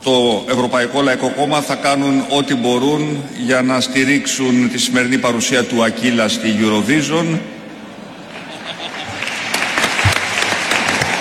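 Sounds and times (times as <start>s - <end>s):
speech: 0.0s - 7.6s
laughter: 0.2s - 11.2s
audience applause: 7.5s - 11.2s.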